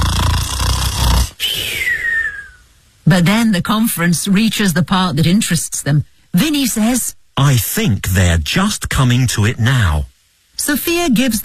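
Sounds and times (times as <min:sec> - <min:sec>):
person imitating snoring: 0:00.0 - 0:02.5
speech: 0:03.1 - 0:11.4.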